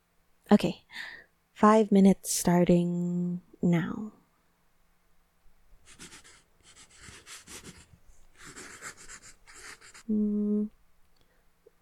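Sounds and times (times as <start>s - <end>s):
speech: 0.5s - 4.2s, 10.1s - 10.8s
drawing on paper: 5.8s - 10.1s.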